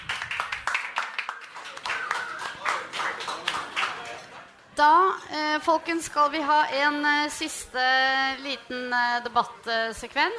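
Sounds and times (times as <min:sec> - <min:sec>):
audience clapping: 0:00.0 - 0:04.3
murmur of voices: 0:01.4 - 0:10.3
speech: 0:04.8 - 0:10.3.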